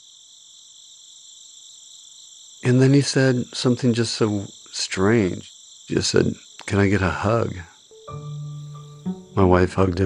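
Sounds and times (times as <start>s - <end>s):
insects chirping in the night air: 0.0s - 10.0s
speech: 2.6s - 8.2s, 9.4s - 10.0s.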